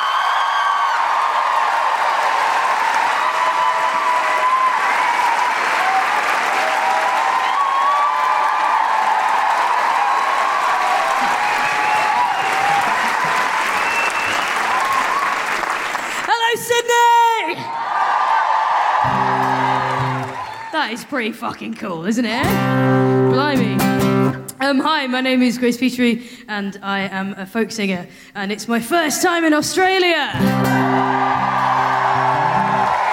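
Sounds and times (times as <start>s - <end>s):
audience applause at a live Sydney show: 0.0s - 16.9s, 17.7s - 21.2s, 30.4s - 33.1s
crowd noise: 0.0s - 24.3s, 30.3s - 33.1s
speech: 20.8s - 24.1s, 24.7s - 31.5s.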